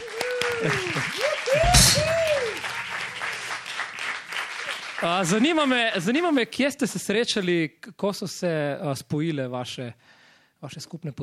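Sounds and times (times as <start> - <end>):
crowd cheering and whooping: 0.0 - 5.3
audience applause: 0.0 - 6.4
speech: 0.6 - 2.5, 5.0 - 11.2.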